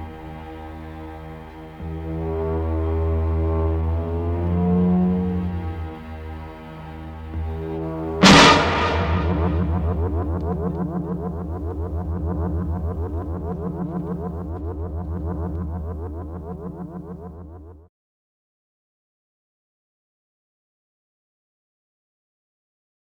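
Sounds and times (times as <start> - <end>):
theme music: 1.9 - 16.8.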